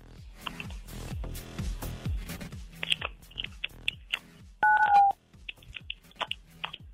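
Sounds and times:
clicks and crunchy noises: 0:00.4 - 0:00.8, 0:02.7 - 0:04.4, 0:05.0 - 0:06.9
telephone keypad tones dialing: 0:04.6 - 0:05.2.

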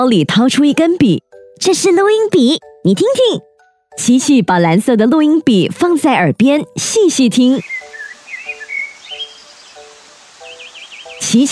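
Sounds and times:
speech: 0:00.0 - 0:07.8, 0:11.2 - 0:11.5
birds chirping: 0:07.1 - 0:11.5
babbling stream: 0:07.6 - 0:11.5.

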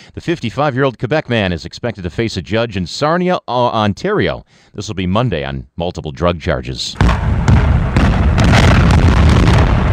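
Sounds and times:
speech: 0:00.2 - 0:07.3
power plant building demolition blast: 0:07.0 - 0:09.9.

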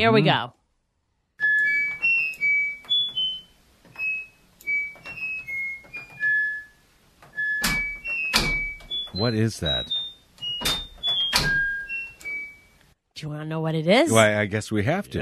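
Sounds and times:
speech: 0:00.0 - 0:00.6, 0:09.2 - 0:10.0, 0:13.2 - 0:15.2
washer and dryer button tones playing melody: 0:01.4 - 0:12.9.

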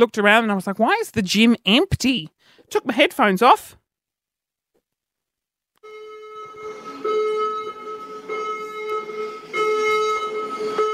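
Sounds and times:
speech: 0:00.0 - 0:03.8
fire alarm going off at gym: 0:05.8 - 0:10.9.

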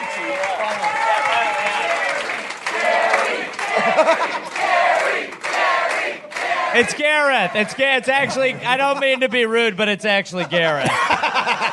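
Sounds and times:
audience cheering and whooping for a comedian: 0:00.0 - 0:05.0
audience clapping for a comedian at a live comedy show: 0:00.0 - 0:08.0
laughter: 0:03.5 - 0:05.0, 0:07.6 - 0:11.7
speech: 0:06.8 - 0:11.7.

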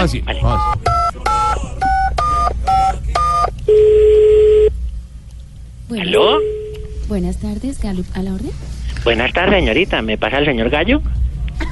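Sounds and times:
speech: 0:00.0 - 0:00.9, 0:05.9 - 0:11.2
phone keypad dialing tones: 0:00.5 - 0:04.7
phone line connecting tone: 0:00.5 - 0:04.7, 0:06.0 - 0:07.0.

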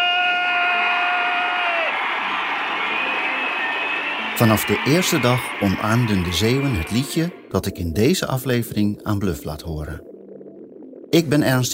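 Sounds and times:
high sustained shout or whistle: 0:00.0 - 0:07.1
huge audience applause and cheering: 0:00.0 - 0:07.4
speech: 0:04.4 - 0:10.1, 0:11.1 - 0:11.7.

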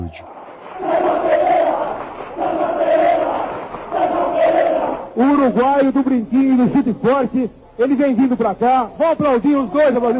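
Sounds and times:
crowd roar: 0:00.0 - 0:05.2
football fans chanting and shouting in a studio: 0:00.0 - 0:05.2
speech: 0:00.1 - 0:01.2, 0:05.2 - 0:10.1.

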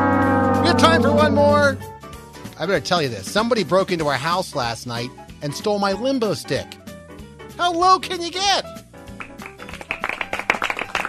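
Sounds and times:
speech: 0:00.9 - 0:01.9, 0:02.6 - 0:06.8, 0:07.6 - 0:08.8
polite golf clap: 0:09.1 - 0:11.0.

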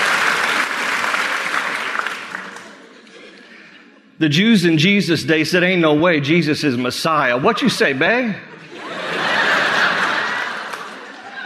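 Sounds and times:
audience clapping: 0:00.0 - 0:03.0, 0:09.5 - 0:11.4
laughter: 0:01.8 - 0:04.2, 0:07.5 - 0:11.4
speech: 0:04.2 - 0:08.6.

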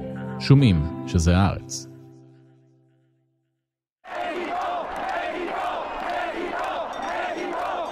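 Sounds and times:
speech: 0:00.4 - 0:01.9
protest crowd chanting: 0:04.1 - 0:07.8.

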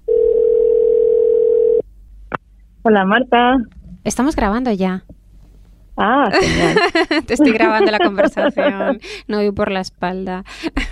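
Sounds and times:
telephone line tone while calling a shop: 0:00.1 - 0:01.8
speech: 0:02.8 - 0:05.1, 0:06.0 - 0:10.9
laughter: 0:06.3 - 0:09.1.

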